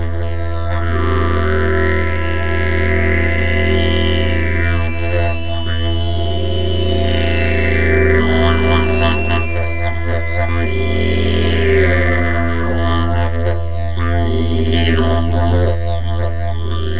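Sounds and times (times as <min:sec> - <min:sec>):
didgeridoo: 0:00.0 - 0:16.9.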